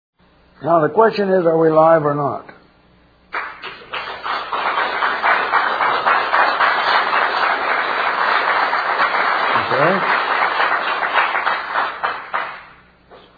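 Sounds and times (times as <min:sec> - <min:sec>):
speech: 0:00.6 - 0:02.5
recorded applause: 0:03.3 - 0:12.8.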